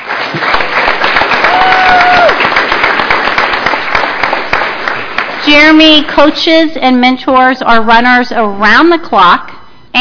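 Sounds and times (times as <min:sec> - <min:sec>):
audience applause: 0:00.0 - 0:05.4
speech: 0:05.5 - 0:09.9.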